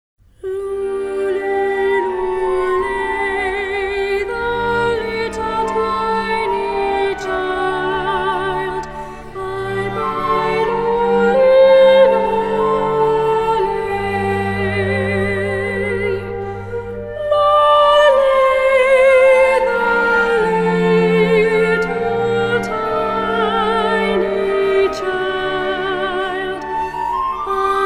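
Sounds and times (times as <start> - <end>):
Celtic Christmas carol: 0.4 - 27.8.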